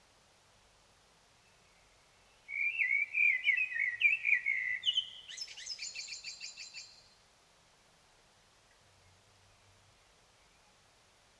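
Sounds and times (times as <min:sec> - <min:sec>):
common blackbird song: 0:01.4 - 0:07.2.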